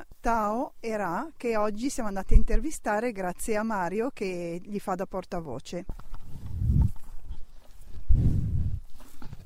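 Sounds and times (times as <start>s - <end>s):
speech: 0.2s - 6.1s
rustling: 5.9s - 9.4s
young bulls breathing heavily: 6.0s - 9.4s.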